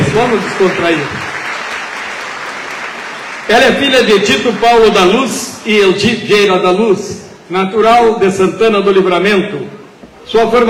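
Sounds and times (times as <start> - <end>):
audience applauding: 0.0 - 6.0
speech: 0.2 - 1.2, 3.5 - 10.6.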